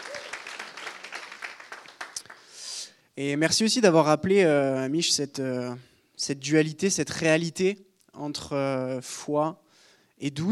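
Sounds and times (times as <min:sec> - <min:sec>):
audience applauding: 0:00.0 - 0:02.6
speech: 0:03.2 - 0:09.6, 0:10.2 - 0:10.5.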